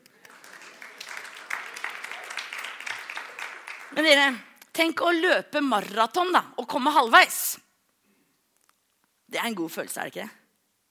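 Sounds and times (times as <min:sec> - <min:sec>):
audience applause: 0:00.0 - 0:04.2
speech: 0:03.9 - 0:07.6, 0:09.4 - 0:10.4.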